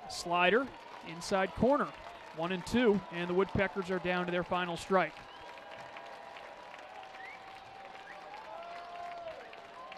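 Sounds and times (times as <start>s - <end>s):
crowd clapping at Atrium Health Ballpark during a baseball game: 0.0s - 9.9s
speech: 0.1s - 5.3s
thin whistles: 5.2s - 5.6s, 7.1s - 8.4s.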